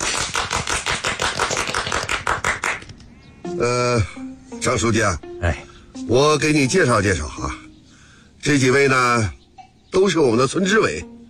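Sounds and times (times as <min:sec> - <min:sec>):
meeting applause: 0:00.0 - 0:03.1
speech: 0:03.6 - 0:07.6, 0:08.4 - 0:11.1.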